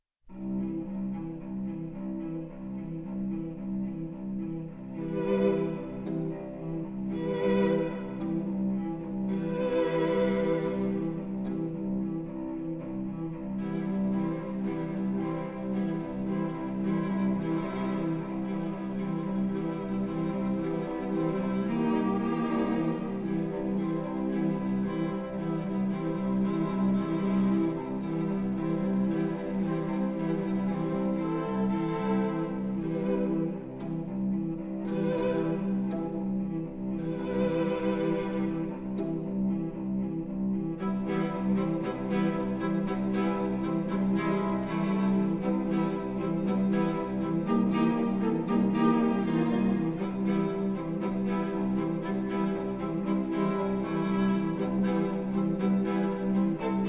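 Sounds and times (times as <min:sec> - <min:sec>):
string quartet: 0:00.3 - 0:56.8.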